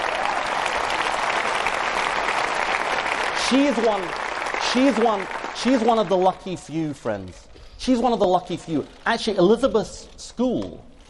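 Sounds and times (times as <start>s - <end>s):
audience applause: 0.0s - 6.8s
speech: 3.5s - 10.9s.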